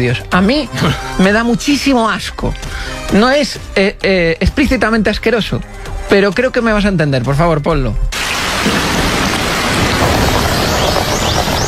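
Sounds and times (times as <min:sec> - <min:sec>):
speech: 0:00.0 - 0:08.8
shower water running: 0:08.2 - 0:11.6.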